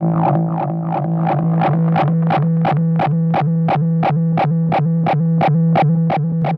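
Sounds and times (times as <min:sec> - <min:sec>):
tape delay feedback: 0:00.0 - 0:06.5.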